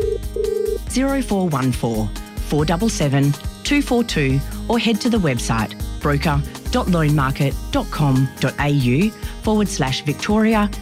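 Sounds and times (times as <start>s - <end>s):
telephone ringing: 0.0s - 0.9s
speech: 1.0s - 10.7s.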